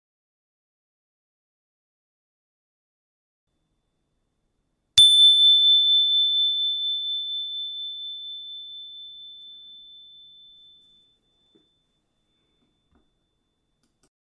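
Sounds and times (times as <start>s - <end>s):
chime: 5.0s - 13.8s.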